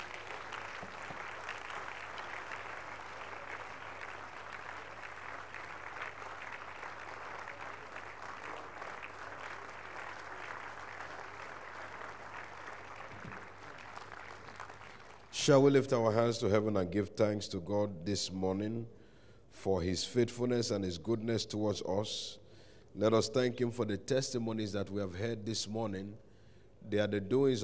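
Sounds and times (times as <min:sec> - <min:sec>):
audience applauding in praise: 0:00.0 - 0:15.4
speech: 0:15.4 - 0:19.0, 0:19.6 - 0:26.2, 0:26.8 - 0:27.6.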